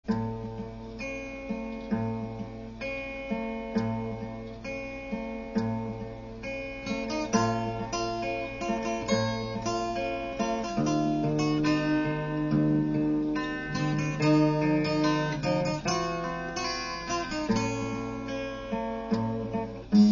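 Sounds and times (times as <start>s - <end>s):
guitar: 0.0s - 20.1s.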